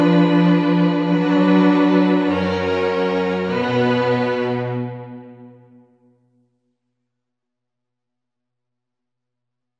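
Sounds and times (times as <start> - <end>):
instrumental music: 0.0 - 6.1.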